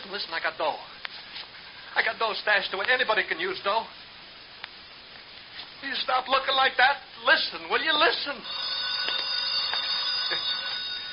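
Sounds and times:
speech: 0.1 - 1.0, 2.0 - 4.0, 5.8 - 8.7
telephone ringing: 7.8 - 11.1.

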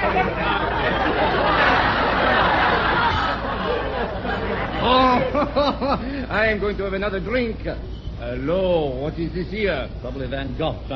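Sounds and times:
party crowd chatter: 0.0 - 6.2
speech: 5.5 - 10.9.

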